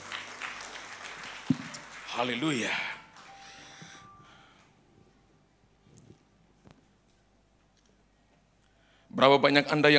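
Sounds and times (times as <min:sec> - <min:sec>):
audience applause: 0:00.0 - 0:03.3
speech: 0:02.2 - 0:02.9, 0:09.2 - 0:09.9.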